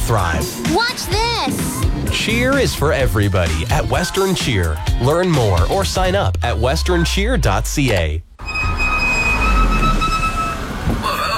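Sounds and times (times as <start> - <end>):
speech: 0.1 - 8.3
squealing worn car brakes: 8.4 - 11.3.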